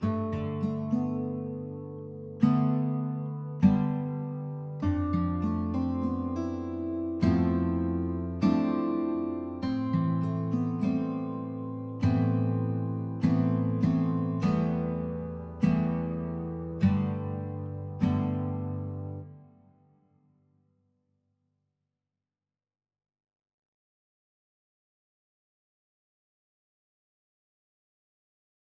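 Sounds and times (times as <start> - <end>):
acoustic music: 0.0 - 19.8.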